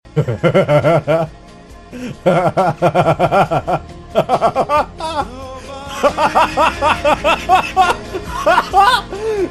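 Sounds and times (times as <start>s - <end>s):
person laughing: 0.2s - 1.3s, 2.0s - 9.4s.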